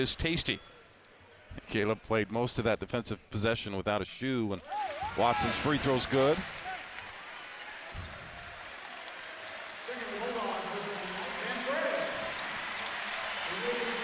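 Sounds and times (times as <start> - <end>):
speech: 0.0 - 0.8, 1.6 - 6.6
arena crowd applause: 4.8 - 14.0.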